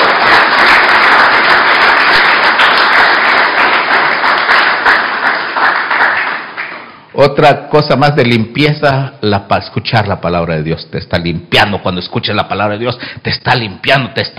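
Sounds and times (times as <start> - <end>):
audience clapping: 0.0 - 7.1
speech: 7.2 - 14.3.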